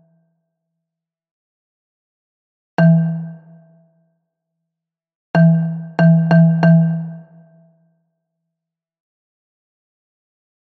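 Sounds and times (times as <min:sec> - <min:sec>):
bass xylophone: 0:02.8 - 0:03.4, 0:05.4 - 0:07.2.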